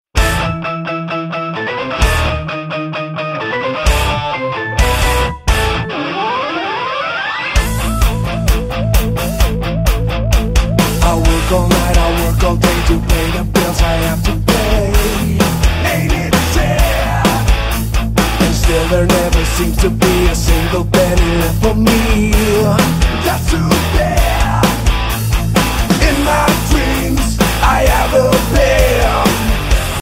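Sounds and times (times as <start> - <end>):
metal cover song: 0.2 - 29.9.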